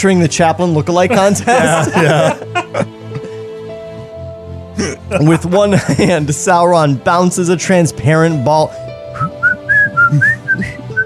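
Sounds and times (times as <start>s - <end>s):
speech: 0.0s - 3.0s, 4.8s - 9.4s, 10.1s - 10.8s
laughter: 1.0s - 3.4s, 4.8s - 6.6s
person whistling a theme tune: 9.2s - 11.0s.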